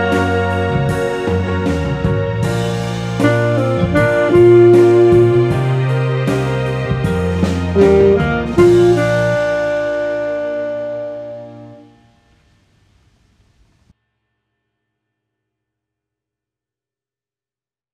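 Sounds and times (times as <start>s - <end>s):
saxophone: 0.0s - 12.2s.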